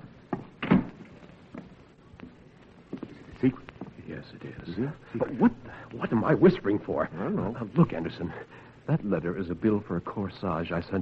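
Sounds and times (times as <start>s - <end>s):
door being closed: 0.4s - 1.2s
speech: 3.4s - 10.9s.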